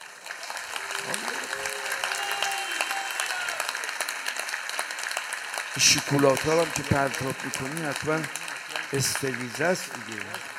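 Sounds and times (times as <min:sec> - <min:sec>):
audience clapping: 0:00.0 - 0:10.5
speech: 0:05.8 - 0:10.5.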